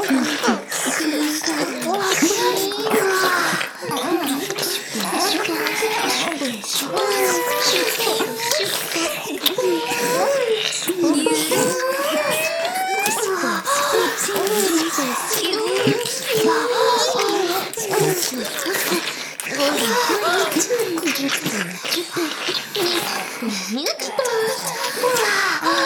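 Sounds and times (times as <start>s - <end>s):
ear licking: 0.0s - 25.8s
oral sex sucking sounds: 0.0s - 25.8s.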